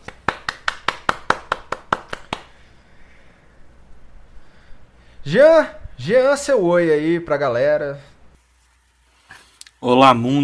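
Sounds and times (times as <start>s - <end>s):
hand clapping: 0.0s - 2.6s
faint low hiss: 2.2s - 10.4s
speech: 5.2s - 8.1s, 9.8s - 10.4s.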